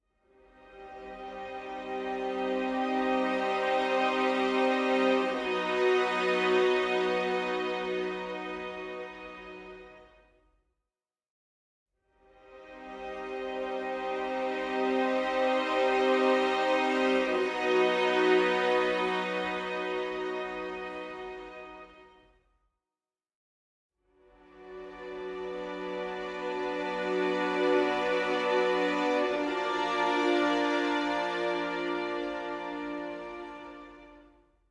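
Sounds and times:
ambient soundtrack music: 0.4s - 9.8s, 12.5s - 22.0s, 24.4s - 34.3s.

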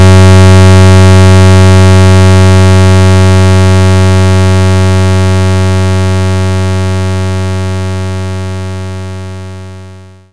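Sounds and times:
75 Hz pulse tone: 0.0s - 7.9s.

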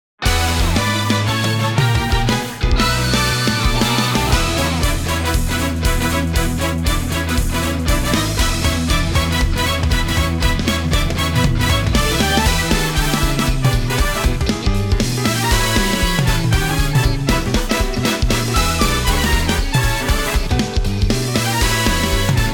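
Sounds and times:
battle game music: 0.2s - 22.5s.

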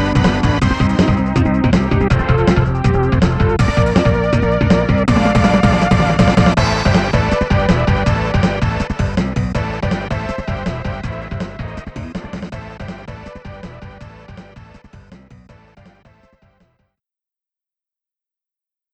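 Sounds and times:
stage two boss battle game music: 0.0s - 14.8s.

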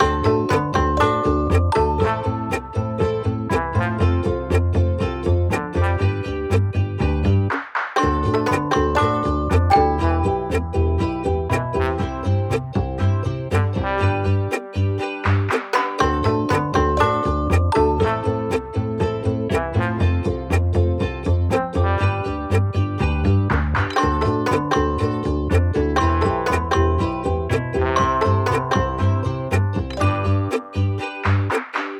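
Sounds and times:
carefree gameplay music loop: 0.0s - 31.9s.

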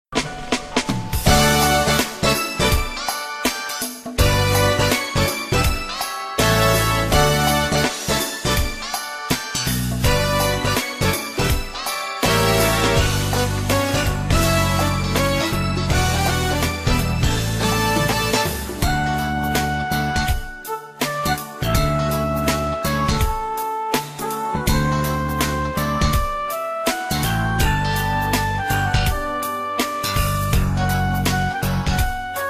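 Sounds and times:
elevator music loop: 0.2s - 32.4s.

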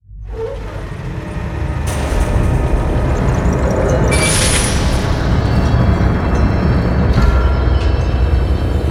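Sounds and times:
door opening: 0.3s - 8.8s.

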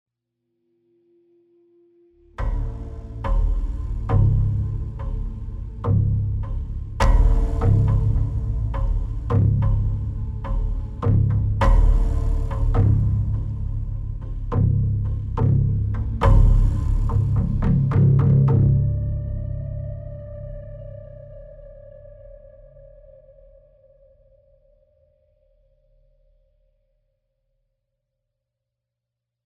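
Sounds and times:
tense mood music: 2.2s - 23.8s.

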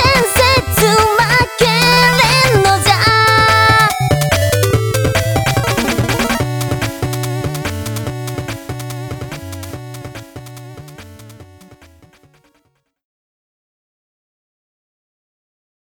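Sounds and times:
fantasy RPG theme music: 0.8s - 12.4s.

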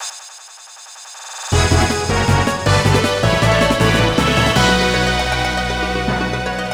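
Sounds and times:
victory jingle: 1.2s - 6.6s.

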